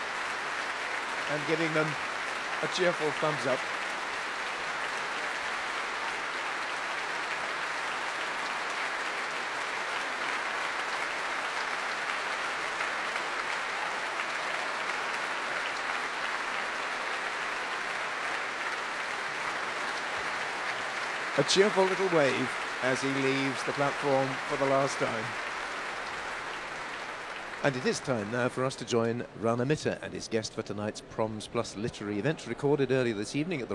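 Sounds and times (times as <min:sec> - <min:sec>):
concert audience applause: 0:00.0 - 0:29.7
speech: 0:01.3 - 0:03.8, 0:21.4 - 0:25.5, 0:27.6 - 0:33.7.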